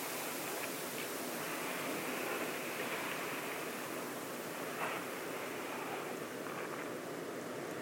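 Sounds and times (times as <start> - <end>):
dense hissing wash of sound from the coastal dunes at Studland: 0.0 - 7.7.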